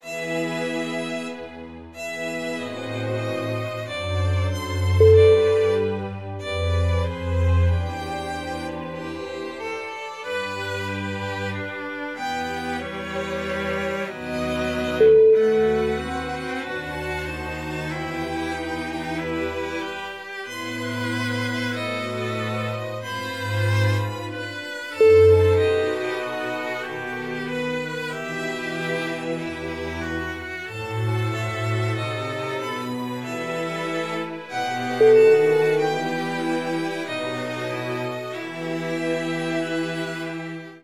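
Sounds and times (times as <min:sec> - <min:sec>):
baroque concertante music: 0:00.0 - 0:40.8.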